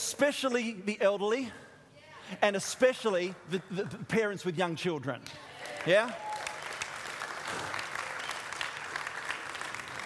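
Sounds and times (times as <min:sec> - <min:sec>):
speech: 0:00.1 - 0:01.7, 0:02.3 - 0:06.3
audience applause: 0:05.6 - 0:10.0.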